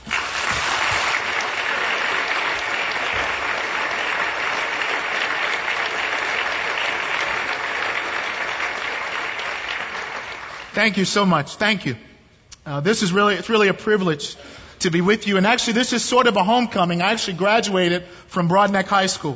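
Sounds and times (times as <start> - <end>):
audience applause welcoming a preacher to the stage: 0.0 - 10.8
speech: 10.8 - 12.1, 12.7 - 19.3.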